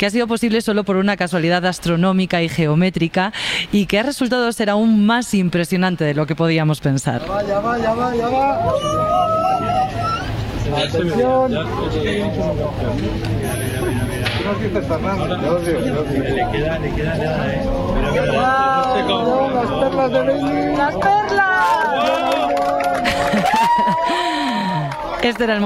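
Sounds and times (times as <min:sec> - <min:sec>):
speech: 0:00.0 - 0:13.7, 0:14.5 - 0:22.7, 0:23.3 - 0:25.6
laughter: 0:08.3 - 0:15.1, 0:22.0 - 0:25.2
crowd applauding and cheering at eclipse totality: 0:20.4 - 0:25.6.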